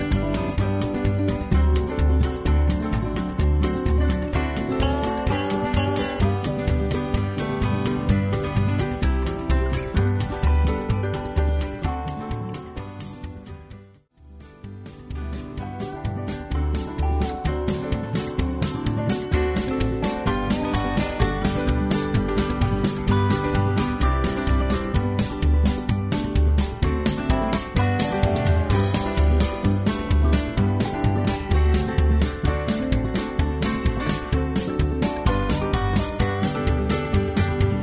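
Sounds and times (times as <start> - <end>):
square dance music without melody: 0.0 - 13.7, 14.6 - 37.8.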